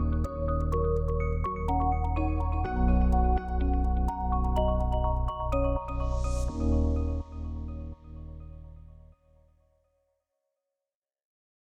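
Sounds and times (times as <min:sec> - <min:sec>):
light minimal background music: 0:00.0 - 0:08.8.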